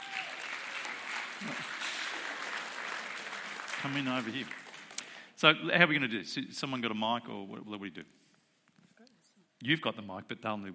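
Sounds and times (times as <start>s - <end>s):
audience applause greeting a speaker at a talk: 0.0s - 5.1s
speech: 3.8s - 4.6s, 5.4s - 8.2s, 9.6s - 10.7s.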